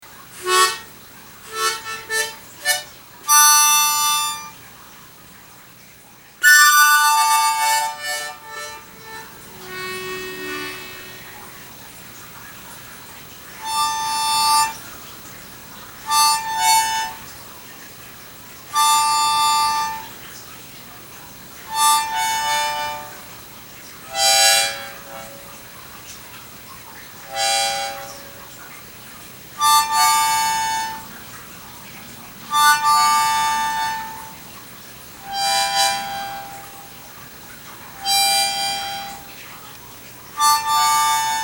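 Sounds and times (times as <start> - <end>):
harmonica live performance: 0.4 - 4.6, 6.4 - 11.8, 13.5 - 15.4, 16.0 - 17.4, 18.6 - 20.2, 21.5 - 25.8, 27.0 - 28.7, 29.6 - 31.5, 32.4 - 39.5, 40.3 - 41.4.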